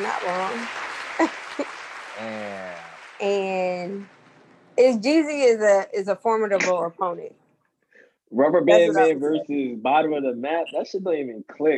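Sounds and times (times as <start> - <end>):
speech: 0.0 - 4.2, 4.8 - 7.4, 8.3 - 11.7
applause: 0.0 - 4.5
laughter: 2.2 - 2.9, 8.4 - 11.7.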